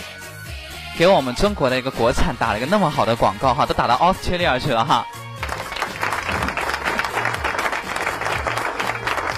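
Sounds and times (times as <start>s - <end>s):
speech: 1.0s - 5.2s
applause: 5.4s - 9.3s.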